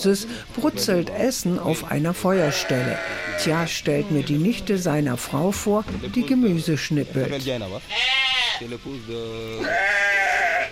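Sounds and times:
speech: 0:00.0 - 0:10.6
wethers bleating next door: 0:02.2 - 0:03.7, 0:07.9 - 0:08.7, 0:09.5 - 0:10.6.

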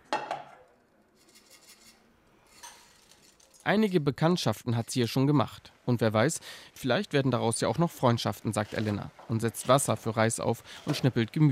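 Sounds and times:
dishes clinking in shared kitchen: 0:02.5 - 0:03.0
speech: 0:03.7 - 0:11.5.

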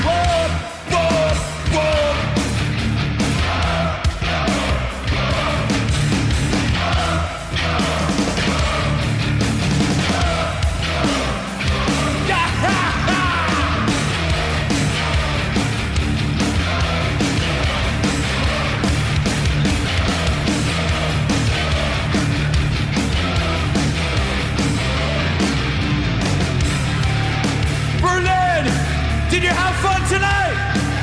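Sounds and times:
crowd yelling and bellowing along: 0:00.0 - 0:31.0
loud live heavy metal concert: 0:00.0 - 0:31.0.

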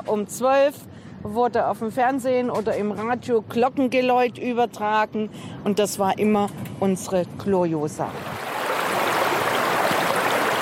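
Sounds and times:
speech: 0:00.1 - 0:08.4
stream water flowing under a historic stone bridge: 0:08.1 - 0:10.6.

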